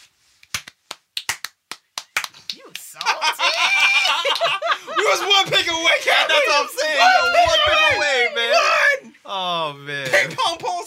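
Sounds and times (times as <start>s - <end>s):
applause, hands clapping: 0.5s - 3.2s
speech: 2.6s - 10.8s
laughter: 2.9s - 8.5s.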